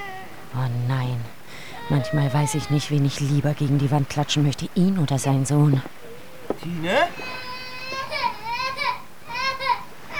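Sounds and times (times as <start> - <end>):
baby crying loudly: 0.0 - 0.5, 1.8 - 3.0, 7.0 - 10.1
speech: 0.5 - 6.0, 6.6 - 7.4.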